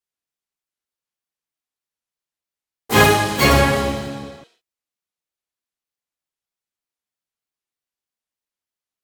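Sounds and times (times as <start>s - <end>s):
outro music: 2.9s - 4.4s.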